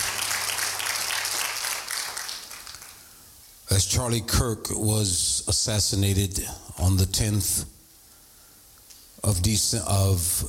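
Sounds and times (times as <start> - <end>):
audience clapping hands: 0.0 - 3.1
speech: 3.7 - 7.7, 9.2 - 10.4.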